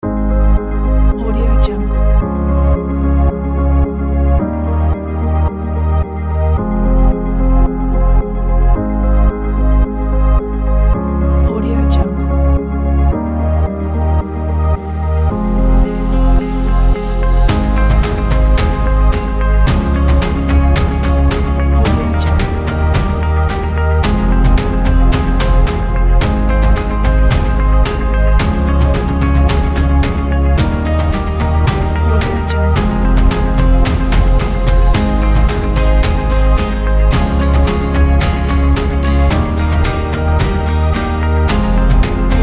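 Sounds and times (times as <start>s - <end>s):
epic ambient music: 0.0s - 42.4s.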